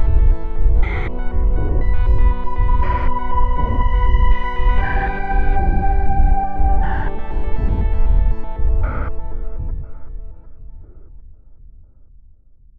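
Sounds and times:
music intro: 0.0 - 10.0.

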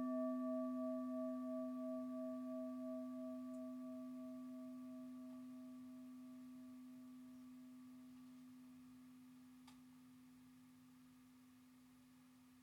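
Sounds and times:
singing bowl: 0.0 - 9.5.

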